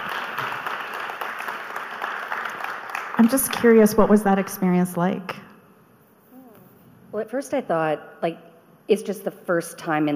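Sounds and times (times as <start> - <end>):
audience round of applause: 0.0 - 3.6
speech: 3.2 - 5.4, 7.2 - 10.1.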